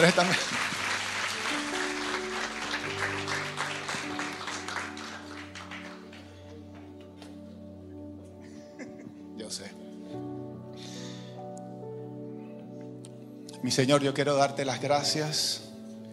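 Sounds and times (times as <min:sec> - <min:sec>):
speech: 0:00.0 - 0:00.8, 0:13.6 - 0:15.6
audience applause: 0:00.0 - 0:07.0
low keyboard chords: 0:00.0 - 0:16.1.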